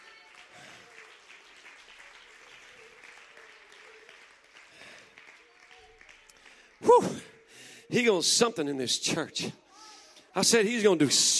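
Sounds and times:
audience clapping hands in praise: 0.0s - 7.4s
speech: 6.9s - 7.3s, 7.9s - 9.6s, 10.4s - 11.3s.

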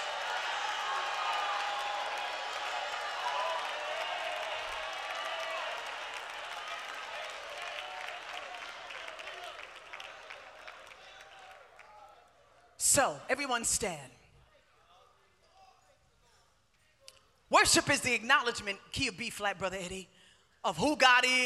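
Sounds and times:
audience clapping: 0.0s - 12.2s
speech: 12.9s - 14.2s, 17.6s - 21.4s.

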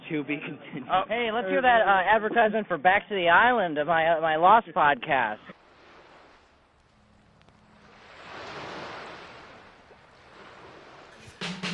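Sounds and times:
speech: 0.1s - 5.6s
ocean surf waves: 5.0s - 11.7s.

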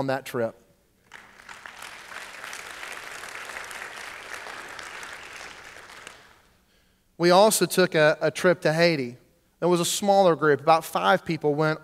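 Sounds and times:
speech: 0.0s - 0.6s, 7.2s - 11.8s
applause: 1.0s - 6.6s.

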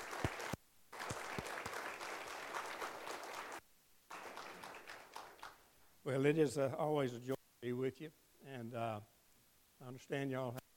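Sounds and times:
audience round of applause: 0.0s - 5.6s
speech: 6.0s - 9.2s, 9.8s - 10.6s.

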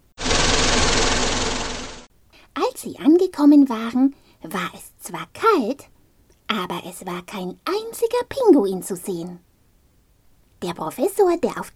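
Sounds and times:
research vehicle purring as it drives off: 0.2s - 2.1s
speech: 2.8s - 5.9s, 6.5s - 9.4s, 10.6s - 11.7s.

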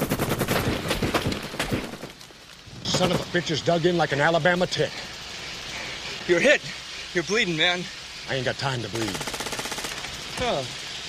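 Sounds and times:
movie gunfire: 0.0s - 2.1s, 9.1s - 10.0s
speech: 3.0s - 5.1s, 6.3s - 9.3s, 10.4s - 10.8s.

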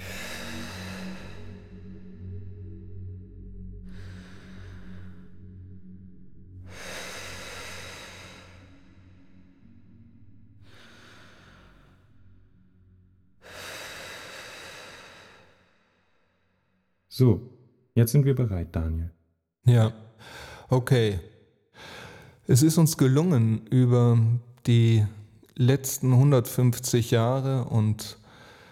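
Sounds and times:
steady low drone: 0.0s - 16.7s
slow deep breathing in and out: 0.0s - 17.1s, 20.0s - 20.8s, 21.7s - 22.5s, 28.2s - 28.7s
speech: 17.2s - 21.9s, 22.5s - 28.2s.

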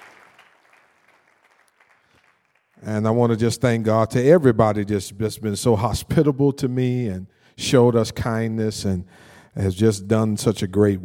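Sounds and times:
audience clapping: 0.0s - 2.8s
speech: 2.8s - 11.0s.

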